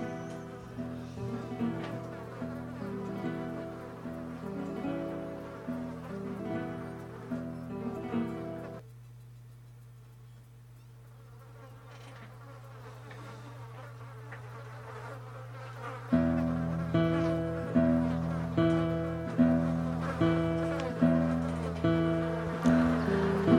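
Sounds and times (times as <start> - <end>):
flies buzzing: 0.0 - 23.5.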